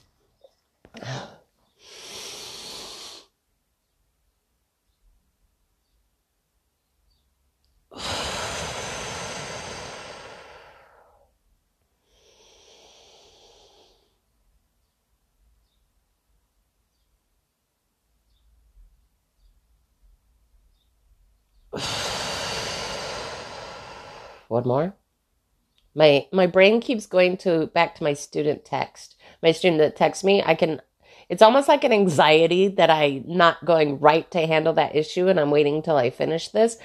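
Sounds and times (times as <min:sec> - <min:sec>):
slow deep breathing in the 4-7-8 pattern: 0:00.9 - 0:03.3, 0:07.9 - 0:11.4, 0:12.0 - 0:14.2, 0:21.7 - 0:24.5
speech: 0:24.5 - 0:25.0, 0:26.0 - 0:36.8.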